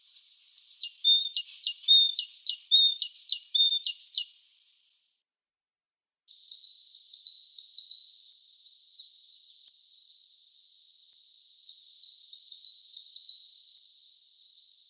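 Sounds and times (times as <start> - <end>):
great tit calling: 0.6 - 4.5.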